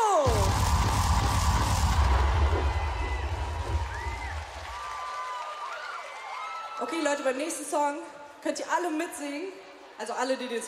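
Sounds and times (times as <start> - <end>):
audience applause: 0.3 - 6.8
speech: 7.1 - 10.6.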